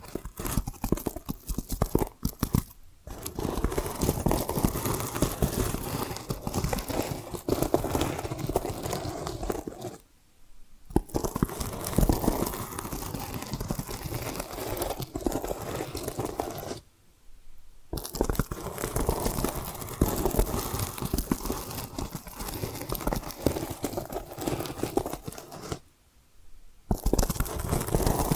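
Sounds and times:
tapping and scratching: 0.0 - 10.0, 10.9 - 16.8, 17.9 - 25.8, 26.9 - 28.3.

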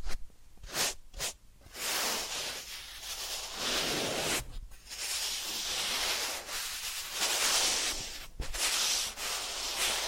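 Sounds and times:
rubbing and brushing from a massage and ear-cleaning session: 0.0 - 10.0.

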